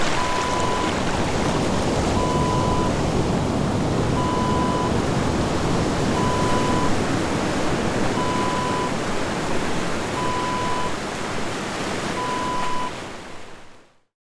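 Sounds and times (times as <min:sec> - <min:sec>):
ocean waves: 0:00.0 - 0:13.9.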